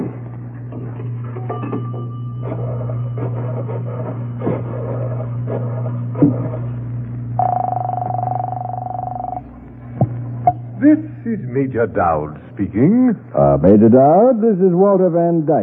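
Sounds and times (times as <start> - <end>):
low constant hum: 0.0 - 15.6
telephone ringing tone: 7.4 - 9.5
speech: 11.3 - 15.6.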